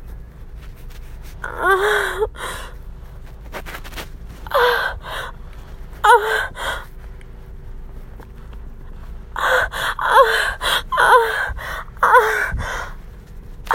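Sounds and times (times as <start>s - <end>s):
person moaning loudly and begging: 1.4s - 2.6s, 4.5s - 5.3s, 6.0s - 6.8s, 9.4s - 12.8s.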